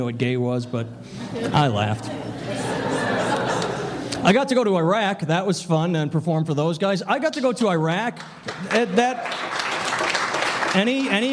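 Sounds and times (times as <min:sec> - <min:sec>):
speech: 0:00.0 - 0:03.0, 0:04.2 - 0:09.6, 0:10.7 - 0:11.3
laughter: 0:01.1 - 0:04.2
audience applause: 0:08.2 - 0:11.3.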